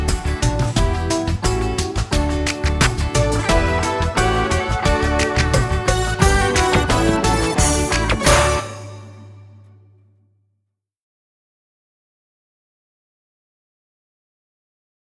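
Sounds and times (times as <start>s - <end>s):
karaoke singing: 0.0s - 8.7s.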